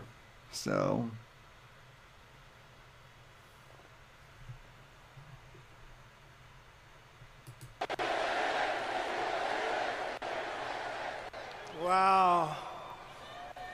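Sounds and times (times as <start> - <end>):
speech: 0.5 - 1.2
crowd cheering: 7.8 - 13.7.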